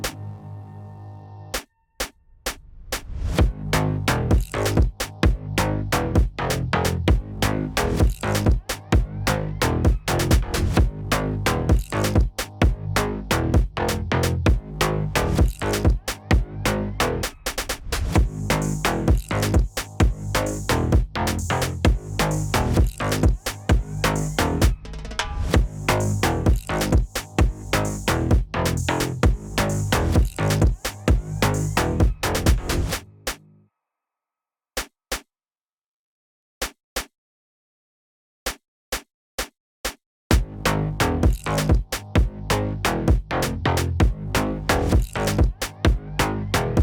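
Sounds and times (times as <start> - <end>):
instrumental Brazilian phonk music: 3.4 - 17.3, 18.2 - 24.8, 25.5 - 32.9, 40.3 - 46.8.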